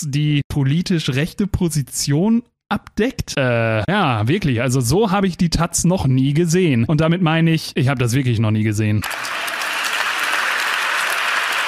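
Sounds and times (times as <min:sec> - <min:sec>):
speech: 0:00.0 - 0:09.4
audience applauding in a church: 0:09.0 - 0:11.6.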